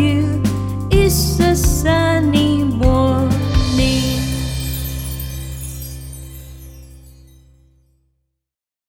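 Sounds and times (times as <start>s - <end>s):
person singing fast: 0.0s - 4.6s.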